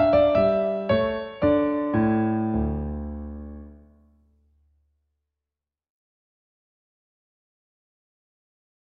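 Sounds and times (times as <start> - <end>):
baroque minuet in D minor: 0.0 - 4.0.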